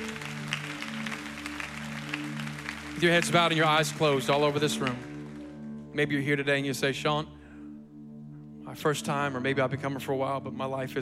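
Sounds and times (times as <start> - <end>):
crowd clapping: 0.0 - 5.9
speech: 3.0 - 5.1, 6.0 - 7.4, 8.7 - 11.0.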